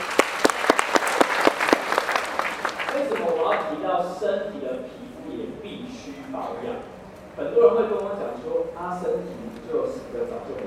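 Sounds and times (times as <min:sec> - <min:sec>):
applause: 0:00.0 - 0:03.7
speech: 0:03.0 - 0:10.6.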